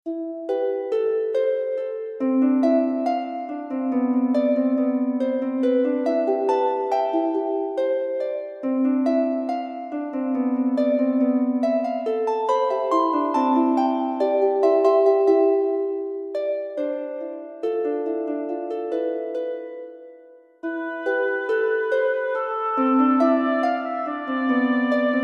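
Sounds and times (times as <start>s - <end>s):
fairy fantasy music: 0.2s - 25.2s.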